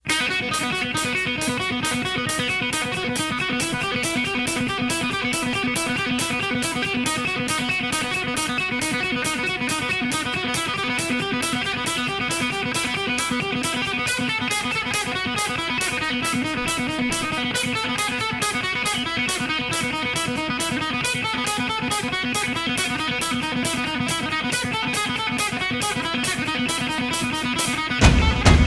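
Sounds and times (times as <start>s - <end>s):
instrumental ringtones: 0.6s - 28.6s.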